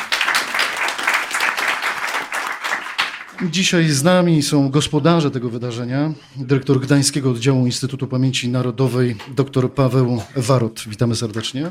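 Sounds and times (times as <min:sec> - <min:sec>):
crowd applause: 0:00.0 - 0:03.8
speech: 0:03.4 - 0:11.6.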